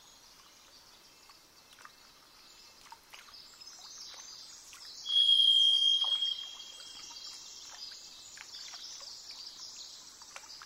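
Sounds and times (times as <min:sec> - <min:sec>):
faint high tone: 0:05.1 - 0:06.8
varied thrush vibrating whistle: 0:05.1 - 0:06.8.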